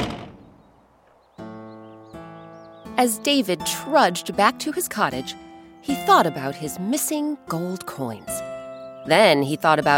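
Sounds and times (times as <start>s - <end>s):
door slammed shut: 0.0s - 0.7s
speech: 3.0s - 8.4s, 9.0s - 9.9s.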